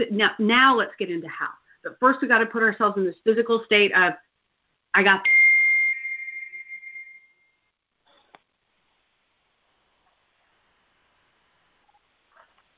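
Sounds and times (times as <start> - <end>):
speech: 0.0 - 4.3, 4.9 - 5.4
faint low hiss: 0.0 - 12.7
high-pitched little whistle: 5.2 - 7.6.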